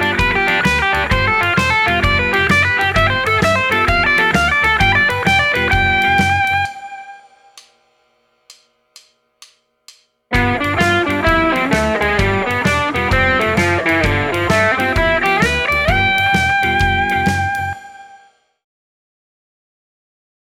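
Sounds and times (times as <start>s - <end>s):
guitar playing blues arpeggio triads over G7: 0.0s - 7.2s, 10.3s - 18.0s.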